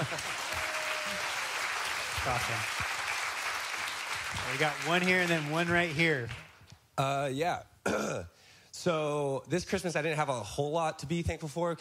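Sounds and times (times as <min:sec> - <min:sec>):
crowd clapping: 0:00.0 - 0:06.7
speech: 0:02.2 - 0:02.9, 0:04.4 - 0:06.4, 0:07.0 - 0:11.7.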